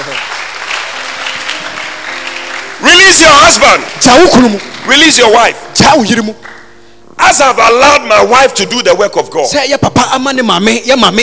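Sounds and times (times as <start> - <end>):
audience clapping: 0.0 - 6.8
speech: 3.1 - 6.6, 7.2 - 11.2.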